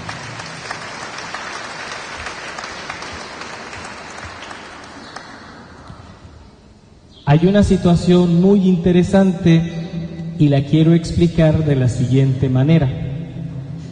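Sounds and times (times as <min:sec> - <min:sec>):
audience applause: 0:00.0 - 0:06.0
speech: 0:07.3 - 0:09.8, 0:10.4 - 0:13.1.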